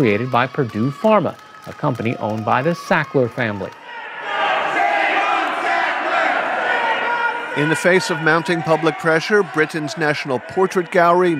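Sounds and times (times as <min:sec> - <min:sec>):
speech: 0:00.0 - 0:03.8, 0:07.6 - 0:11.3
protesters chanting inside a museum: 0:03.8 - 0:11.3.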